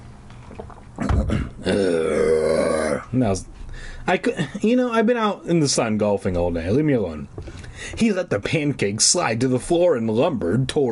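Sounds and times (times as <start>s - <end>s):
person imitating monster growl: 1.0s - 3.2s
speech: 1.7s - 2.0s, 3.1s - 10.8s.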